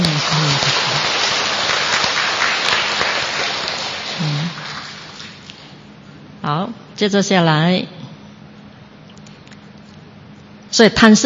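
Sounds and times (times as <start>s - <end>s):
audience applause: 0.0s - 5.7s
speech: 6.5s - 8.0s, 10.8s - 11.2s.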